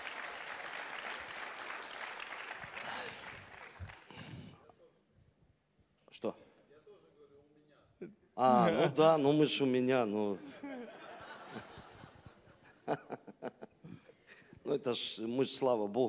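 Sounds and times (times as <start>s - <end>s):
gathered group applauding: 0.0s - 4.6s
speech: 6.2s - 6.4s, 8.0s - 10.6s, 14.7s - 16.0s
laughter: 10.4s - 14.5s.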